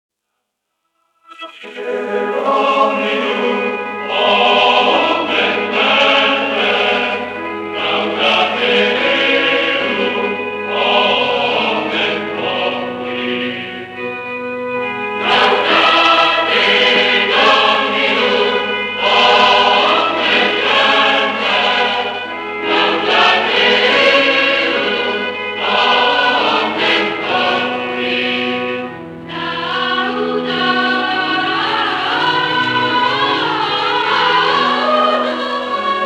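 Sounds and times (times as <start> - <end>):
choir singing a chorale: 1.3 - 36.0.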